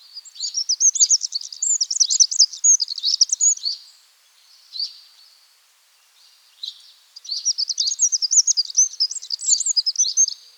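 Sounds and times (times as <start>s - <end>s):
Eurasian wren singing: 0.3s - 3.8s, 7.2s - 10.5s.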